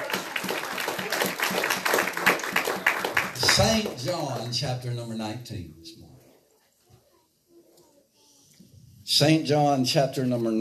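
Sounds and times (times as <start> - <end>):
audience hand clapping: 0.0 - 4.9
speech: 3.5 - 6.0, 9.2 - 10.5.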